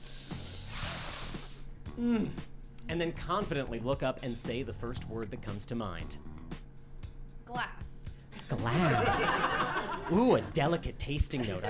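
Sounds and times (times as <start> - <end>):
loud sniffing of wine: 0.0 - 1.8
speech: 2.0 - 6.3, 7.5 - 7.7, 8.5 - 11.6
laughter: 8.5 - 11.6.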